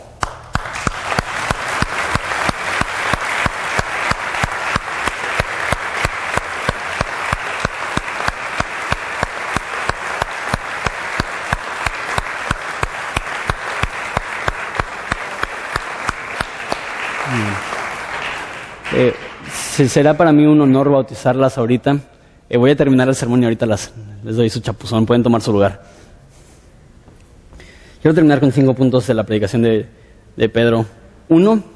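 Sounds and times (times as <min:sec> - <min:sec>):
audience applause: 0:00.2 - 0:19.6
speech: 0:19.8 - 0:25.9, 0:28.0 - 0:31.7.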